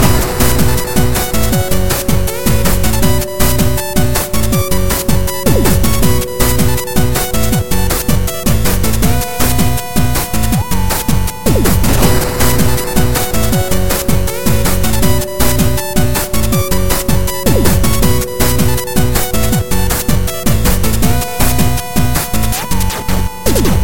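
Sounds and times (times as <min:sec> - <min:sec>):
8-bit game music: 0:00.0 - 0:23.8.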